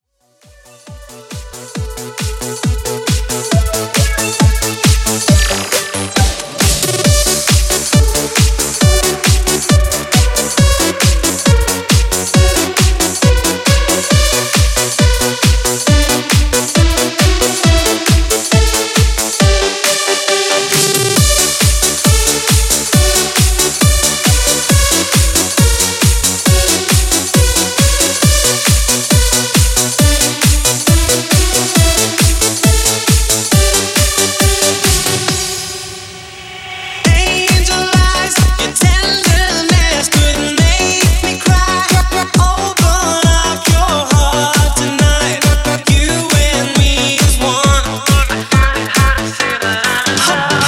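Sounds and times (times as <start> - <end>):
drum beat at 136 BPM: 0.4 - 35.6, 37.1 - 50.6.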